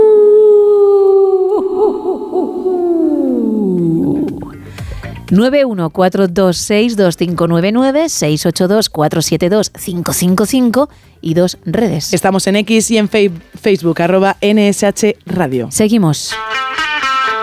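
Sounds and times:
person imitating wolf howl: 0:00.0 - 0:04.6
speech: 0:05.3 - 0:17.2.

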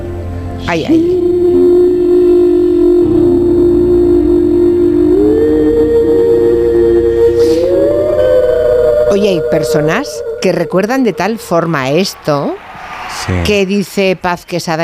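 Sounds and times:
speech: 0:00.7 - 0:01.4, 0:09.2 - 0:12.6, 0:13.2 - 0:14.8
horns and whistles blaring: 0:00.9 - 0:12.6
high squeal: 0:01.0 - 0:13.3.

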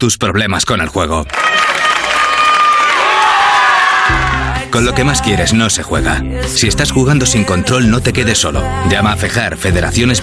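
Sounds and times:
speech: 0:00.0 - 0:01.8, 0:04.7 - 0:10.2
wedding guests cheering and whooping: 0:01.3 - 0:05.4.

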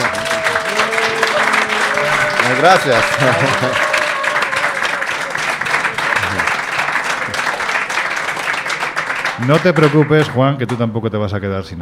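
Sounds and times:
laughter: 0:00.0 - 0:07.5
audience applause: 0:00.0 - 0:10.8
speech: 0:02.6 - 0:03.8, 0:09.4 - 0:11.8.

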